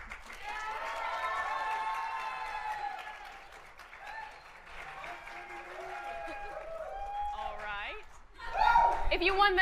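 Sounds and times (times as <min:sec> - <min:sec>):
audience applause: 0:00.0 - 0:09.1
whoops and cheering: 0:00.4 - 0:09.1
speech: 0:09.1 - 0:09.6.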